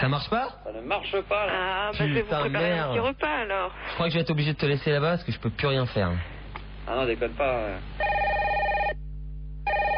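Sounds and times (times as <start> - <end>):
speech: 0.0 - 8.2
telephone ringing: 8.0 - 9.0, 9.6 - 9.9.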